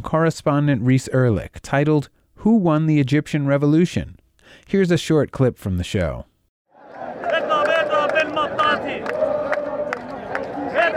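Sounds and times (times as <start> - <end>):
speech: 0.0 - 6.3
protesters singing at a Tahrir Square rally in Cairo: 6.8 - 10.9.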